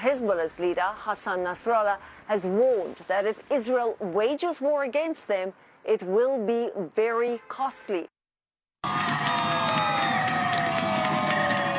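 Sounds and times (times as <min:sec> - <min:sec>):
speech: 0:00.0 - 0:08.1
teachers in Newton, Massachusetts cheering and shouting after strike ended: 0:08.8 - 0:11.7.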